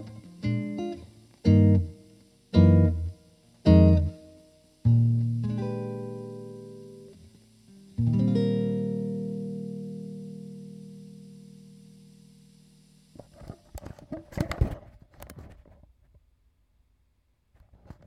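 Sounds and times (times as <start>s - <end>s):
guitar chord melody: 0.0s - 13.1s.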